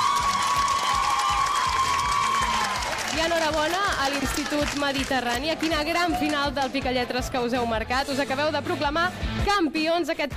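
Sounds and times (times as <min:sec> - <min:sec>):
audience applause: 0:00.0 - 0:06.7
crowd cheering: 0:00.0 - 0:06.8
speech: 0:03.2 - 0:10.3.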